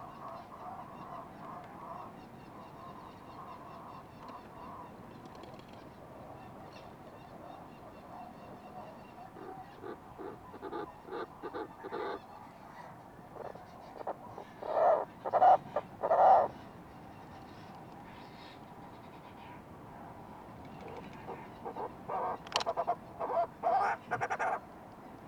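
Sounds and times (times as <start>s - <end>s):
low background hiss: 0.0s - 25.2s
fulmar prion croaking calls: 9.2s - 12.3s, 13.3s - 16.6s, 20.9s - 24.6s.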